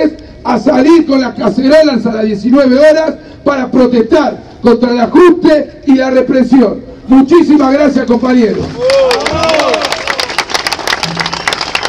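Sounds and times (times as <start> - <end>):
speech: 0.5 - 9.3
crowd applauding: 8.8 - 11.8.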